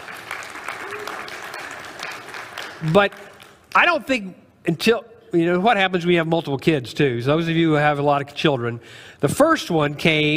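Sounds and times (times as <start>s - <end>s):
audience applause: 0.0s - 3.7s
speech: 2.8s - 10.3s.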